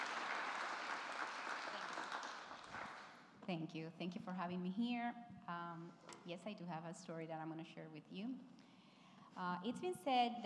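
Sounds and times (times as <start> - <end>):
crowd applause: 0.0 - 3.2
speech: 3.5 - 8.6, 9.4 - 10.4.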